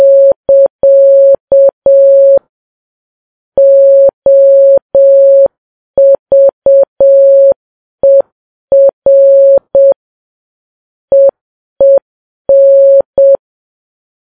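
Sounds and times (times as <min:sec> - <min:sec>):
morse code beeps: 0:00.0 - 0:02.4, 0:03.6 - 0:10.0, 0:11.1 - 0:13.4.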